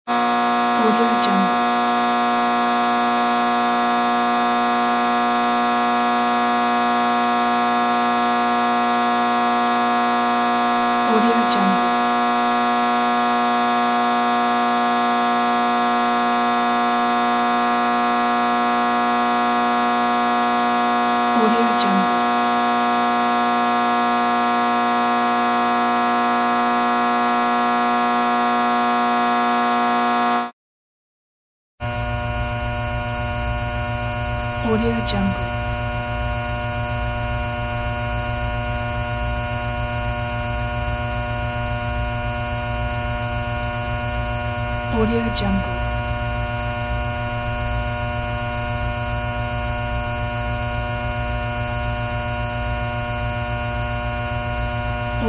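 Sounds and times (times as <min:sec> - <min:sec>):
electric transformer hum: 0:00.1 - 0:30.5, 0:31.8 - 0:55.2.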